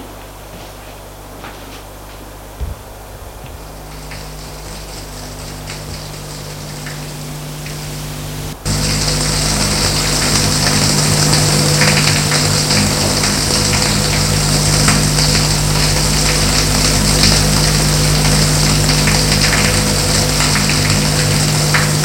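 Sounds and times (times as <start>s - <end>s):
shower running water: 2.6s - 22.0s.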